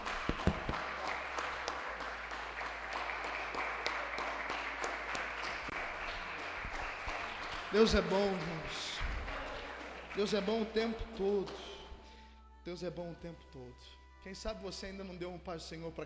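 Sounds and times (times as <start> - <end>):
audience applauding: 0.0 - 11.7
speech: 7.7 - 8.8, 10.2 - 11.7, 12.7 - 16.0.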